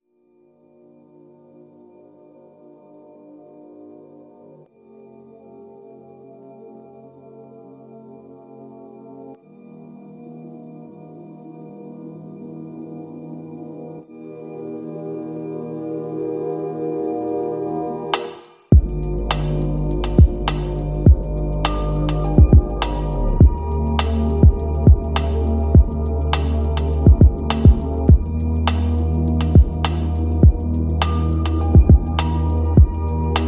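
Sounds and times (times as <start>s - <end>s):
lo-fi hip hop music: 18.1s - 33.4s.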